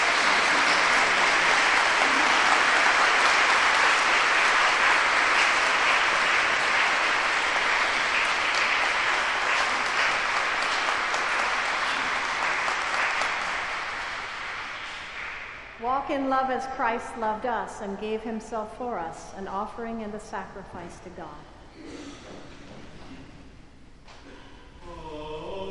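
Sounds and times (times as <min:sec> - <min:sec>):
church wedding congregation applause: 0:00.0 - 0:15.9
speech: 0:16.1 - 0:22.0.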